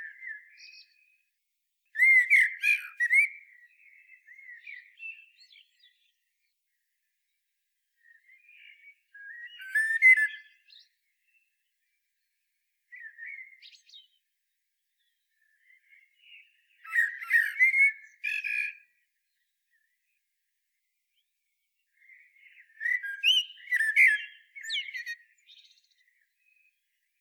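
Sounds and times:
common blackbird singing: 0:00.0 - 0:01.2, 0:02.0 - 0:06.2, 0:08.0 - 0:11.5, 0:12.9 - 0:14.2, 0:15.0 - 0:19.5, 0:22.0 - 0:26.8.

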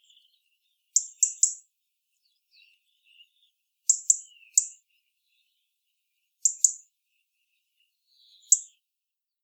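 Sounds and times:
European robin giving sharp high ticking calls: 0:00.9 - 0:01.7, 0:03.1 - 0:04.8, 0:06.4 - 0:06.9, 0:08.3 - 0:08.8.

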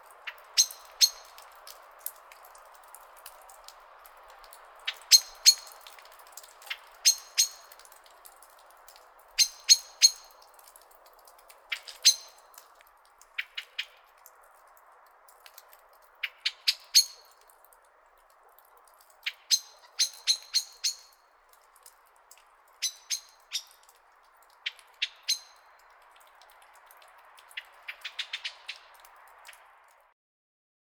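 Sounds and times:
common blackbird chink calls: 0:00.3 - 0:01.4, 0:04.9 - 0:05.9, 0:06.7 - 0:07.8, 0:09.4 - 0:10.4, 0:11.7 - 0:12.5, 0:16.2 - 0:17.4, 0:19.3 - 0:21.2, 0:22.8 - 0:23.9, 0:24.6 - 0:25.8, 0:27.5 - 0:29.6.

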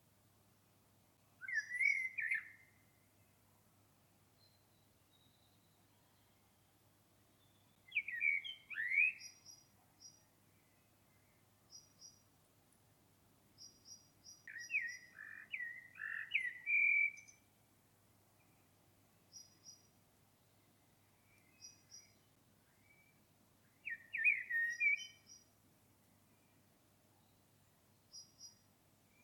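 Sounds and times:
common blackbird chirping: 0:01.4 - 0:03.0, 0:04.4 - 0:06.4, 0:07.3 - 0:12.2, 0:13.6 - 0:17.5, 0:19.3 - 0:19.9, 0:21.2 - 0:25.5, 0:28.0 - 0:29.2.

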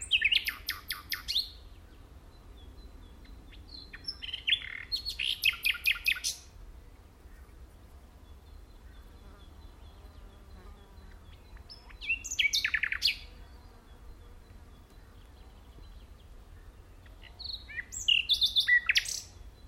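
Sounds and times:
common nightingale singing: 0:00.0 - 0:06.5, 0:08.2 - 0:19.6.

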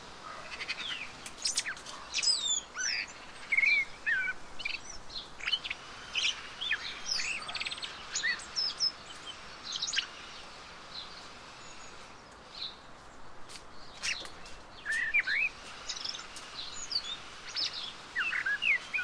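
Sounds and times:
common blackbird whistled song: 0:00.6 - 0:10.1, 0:14.0 - 0:19.0.

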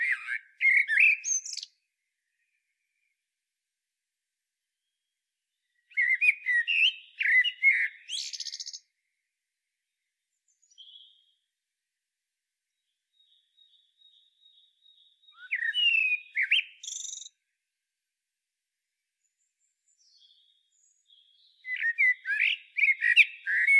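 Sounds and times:
common blackbird singing: 0:00.0 - 0:02.6, 0:05.6 - 0:09.0, 0:09.9 - 0:11.4, 0:12.8 - 0:17.4, 0:19.6 - 0:23.7.

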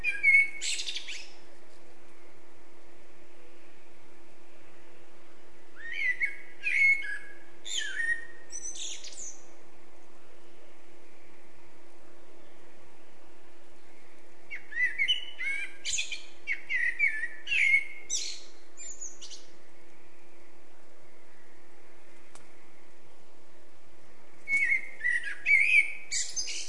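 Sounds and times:
Eurasian blackbird song: 0:00.0 - 0:01.4, 0:05.7 - 0:09.6, 0:13.8 - 0:23.2, 0:24.4 - 0:26.6
steady low background hum: 0:00.0 - 0:26.6.

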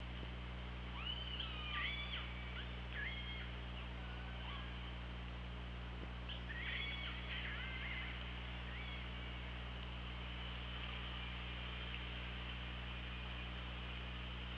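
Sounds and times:
low hum: 0:00.0 - 0:14.5
orca pulsed squealing calls: 0:01.0 - 0:03.5, 0:06.3 - 0:09.1.

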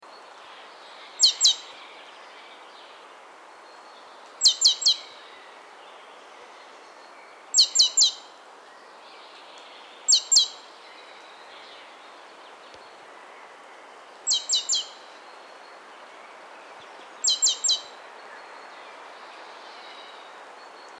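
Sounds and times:
steady background hiss: 0:00.0 - 0:20.9
great tit sharp metallic calls: 0:01.2 - 0:01.6, 0:04.4 - 0:05.0, 0:07.5 - 0:08.3, 0:10.0 - 0:10.6, 0:14.3 - 0:15.0, 0:17.2 - 0:18.0.

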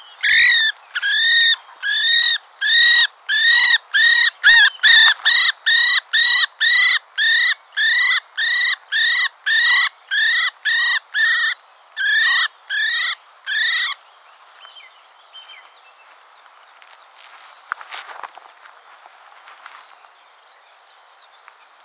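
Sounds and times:
common blackbird harsh calls: 0:00.0 - 0:14.0.

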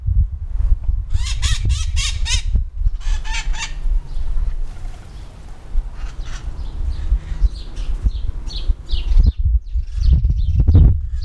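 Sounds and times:
strong low-frequency background noise: 0:00.0 - 0:11.1
bird uttering loud nasal harmonic calls: 0:01.2 - 0:09.2.

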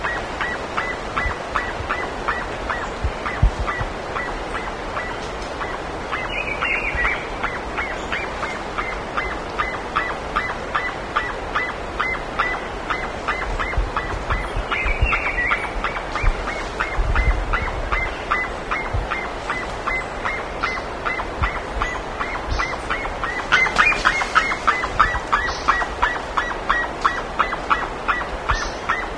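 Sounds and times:
bird honking calls: 0:00.0 - 0:29.1
hiss: 0:00.0 - 0:29.1.

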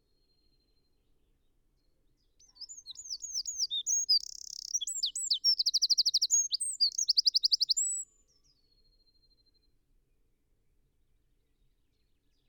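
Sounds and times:
Eurasian wren singing: 0:02.4 - 0:08.0.

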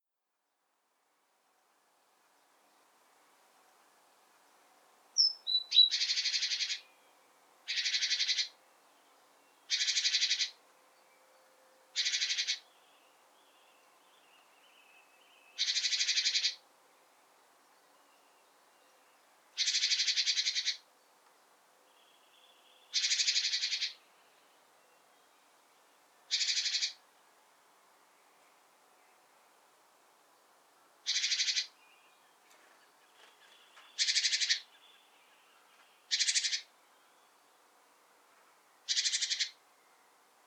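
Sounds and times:
great tit harsh buzzy calls: 0:05.2 - 0:06.8, 0:07.7 - 0:08.5, 0:09.7 - 0:10.5, 0:12.0 - 0:12.6, 0:15.6 - 0:16.6, 0:19.6 - 0:20.8, 0:22.9 - 0:24.0, 0:26.3 - 0:27.0, 0:31.1 - 0:31.7, 0:34.0 - 0:34.7, 0:36.1 - 0:36.7, 0:38.9 - 0:39.6.

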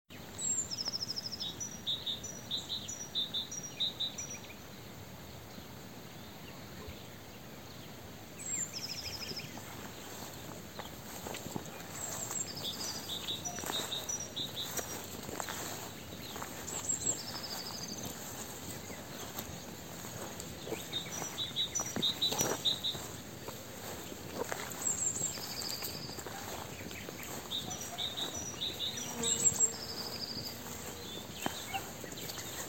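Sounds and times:
hiss: 0:00.1 - 0:32.6
soft rustling steps: 0:08.5 - 0:32.6
great tit calls: 0:08.9 - 0:32.6.

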